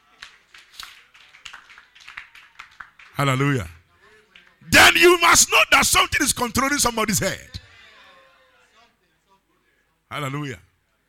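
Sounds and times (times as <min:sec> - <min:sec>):
audience clapping: 0:00.0 - 0:03.4
speech: 0:03.2 - 0:03.8, 0:05.3 - 0:07.6, 0:10.2 - 0:10.7.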